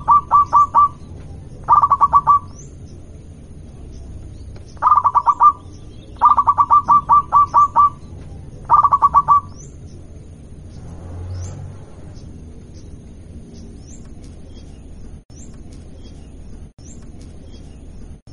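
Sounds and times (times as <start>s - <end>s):
zebra dove of a local strain cooing: 0.0s - 2.6s, 4.8s - 9.7s.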